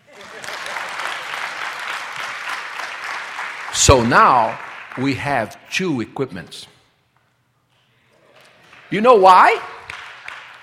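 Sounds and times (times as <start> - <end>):
audience clapping: 0.0 - 5.5, 8.3 - 10.6
speech: 3.8 - 6.8, 8.9 - 9.8.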